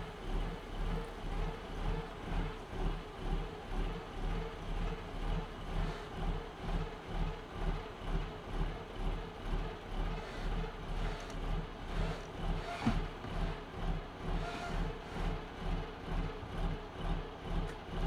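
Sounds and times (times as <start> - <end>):
fire engine engaging main: 0.0 - 18.0.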